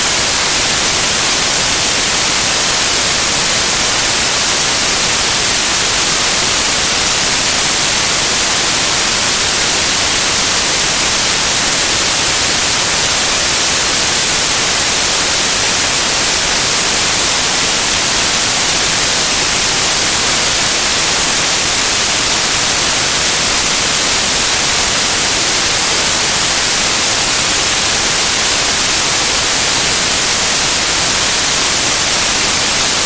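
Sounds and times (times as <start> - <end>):
white noise: 0.0 - 33.0.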